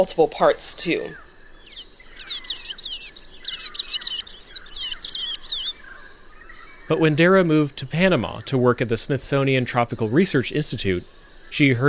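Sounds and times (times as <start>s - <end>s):
steady high insect hum: 0.0s - 11.8s
Blue-gray Tanager twittering song: 1.1s - 6.9s.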